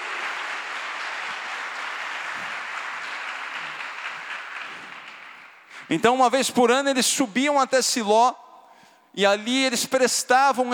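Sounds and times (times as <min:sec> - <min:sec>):
audience applause: 0:00.0 - 0:05.8
speech: 0:05.9 - 0:08.4, 0:09.2 - 0:10.7.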